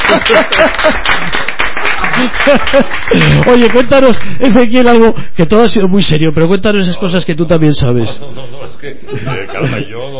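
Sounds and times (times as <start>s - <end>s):
laughter: 0.0s - 3.7s, 7.9s - 10.1s
audience applause: 0.0s - 4.3s
speech: 0.1s - 1.5s, 2.2s - 10.1s.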